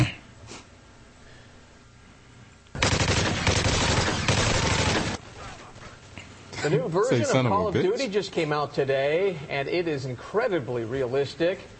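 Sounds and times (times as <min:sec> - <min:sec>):
rapid automatic gunfire at a real-life gun range: 0:02.8 - 0:05.2
speech: 0:06.6 - 0:11.7.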